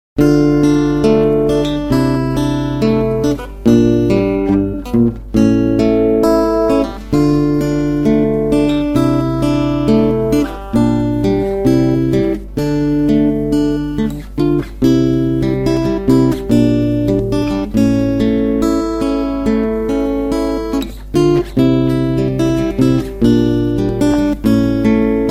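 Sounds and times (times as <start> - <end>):
guitar: 0.2 - 25.2.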